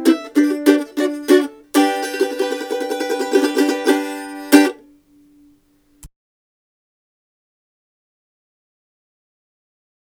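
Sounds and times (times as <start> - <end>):
mandolin: 0.0 - 5.5.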